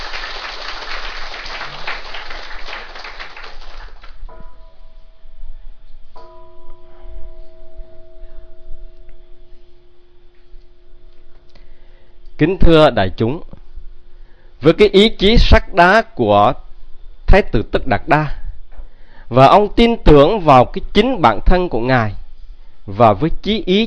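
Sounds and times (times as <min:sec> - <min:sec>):
audience applause at a Buddhist dharma talk: 0:00.0 - 0:04.2
faint low hum: 0:00.0 - 0:23.8
speech: 0:12.4 - 0:13.6, 0:14.6 - 0:16.6, 0:17.3 - 0:18.4, 0:19.3 - 0:22.2, 0:22.9 - 0:23.8.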